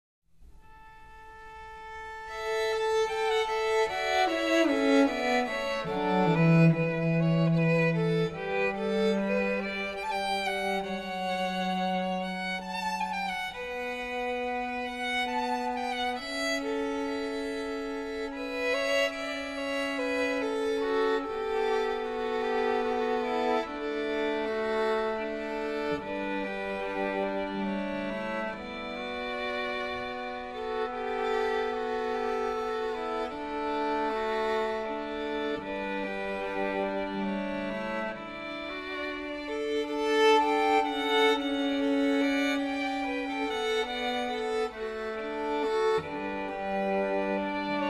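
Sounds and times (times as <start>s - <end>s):
string quartet: 0.6s - 47.8s.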